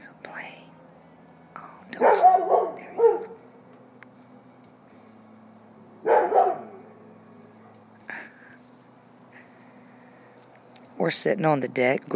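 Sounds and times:
dogs barking: 1.9s - 3.5s, 6.0s - 7.0s
speech: 2.2s - 2.7s, 11.0s - 12.1s.

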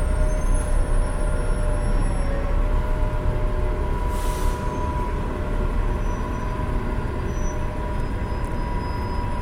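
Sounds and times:
bus engines idling in a downtown bus terminal: 0.0s - 9.3s
bus air brakes hissing: 4.0s - 4.9s.

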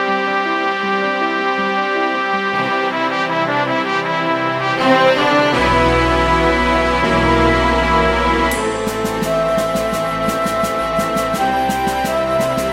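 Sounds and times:
virtual brass VST plugin: 0.0s - 12.7s
virtual piano VST plugin: 0.0s - 12.7s
virtual strings VST plugin: 0.0s - 12.7s
virtual flute VST plugin: 3.8s - 12.7s.

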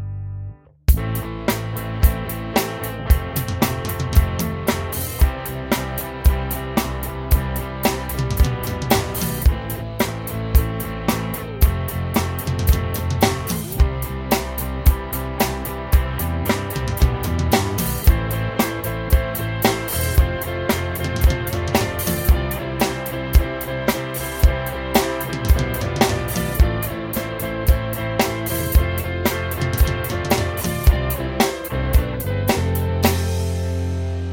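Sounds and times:
drum: 0.9s - 34.1s.

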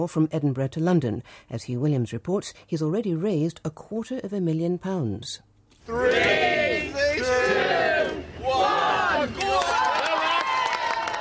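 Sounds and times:
speech: 0.0s - 6.6s
small crowd cheering at a send-off: 5.9s - 11.1s.

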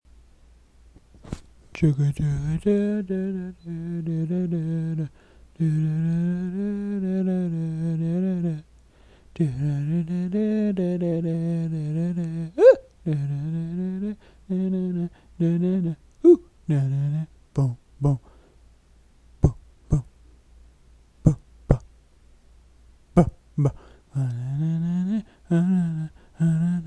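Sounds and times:
mouth noises: 1.8s - 8.6s, 9.4s - 18.3s, 19.4s - 20.2s, 21.2s - 21.9s, 23.2s - 26.8s.

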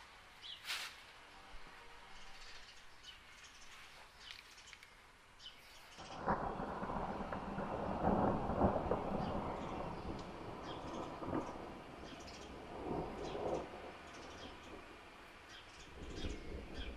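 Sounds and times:
birds heard from bedroom window: 0.3s - 16.9s
thunder heard from bedroom window: 6.0s - 15.0s, 15.9s - 16.9s.

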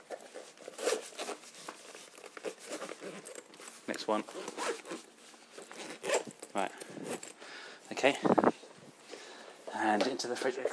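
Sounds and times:
bag being zipped shut: 0.0s - 7.4s
speech: 3.9s - 5.0s, 6.6s - 8.5s, 10.0s - 10.7s.

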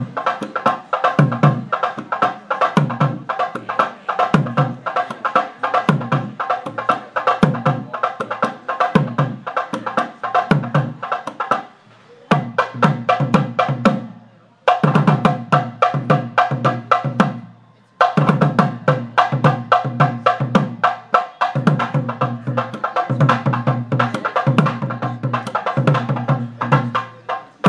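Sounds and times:
drumming: 0.0s - 27.6s.

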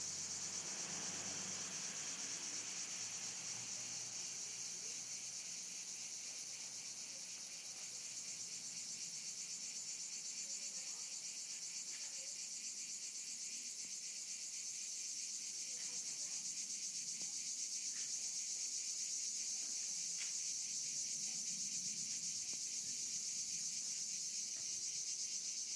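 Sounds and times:
cicada: 0.0s - 25.7s.

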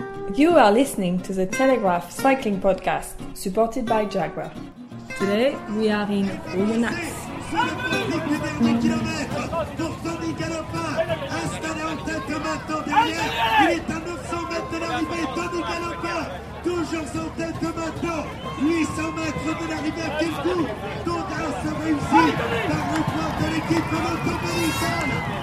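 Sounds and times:
speech: 0.3s - 9.9s, 14.6s - 25.4s
crowd at cycling race finishing straight of Tour de France stage 11: 6.2s - 25.4s.

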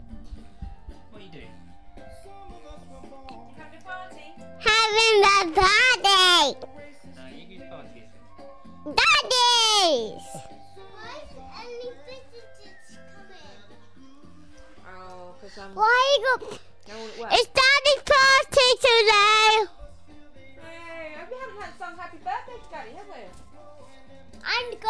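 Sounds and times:
children at a birthday: 4.6s - 6.7s, 8.8s - 14.7s, 15.7s - 19.8s, 23.8s - 24.8s.

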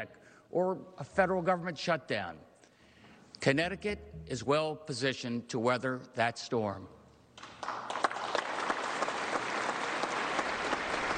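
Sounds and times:
speech: 0.0s - 2.5s, 3.4s - 7.0s
audience applause: 7.4s - 11.1s.

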